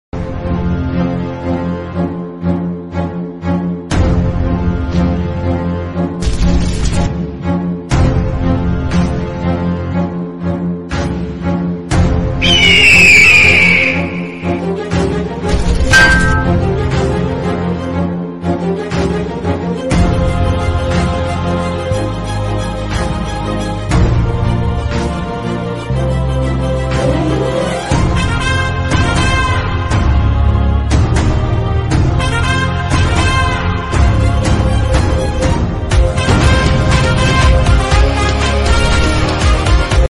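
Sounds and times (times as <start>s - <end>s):
background music: 0.2s - 40.0s
ringtone: 15.9s - 16.6s.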